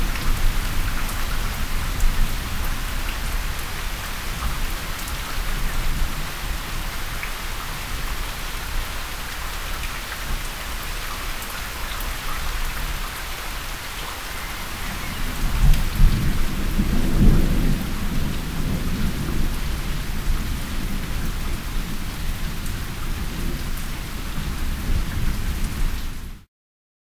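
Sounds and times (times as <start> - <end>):
water stream: 0.0 - 17.6
rolling thunder: 13.9 - 25.7.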